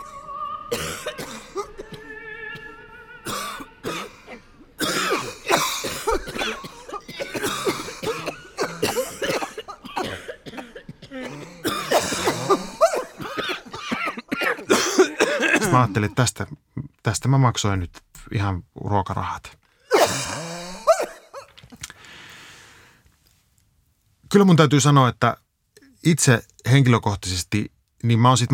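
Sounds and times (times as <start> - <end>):
sustained sung or instrumental tone: 0.0 - 4.8
audience coughing and throat clearing: 0.0 - 16.2, 19.9 - 21.6
speech: 15.8 - 19.6, 24.3 - 25.4, 26.0 - 28.5.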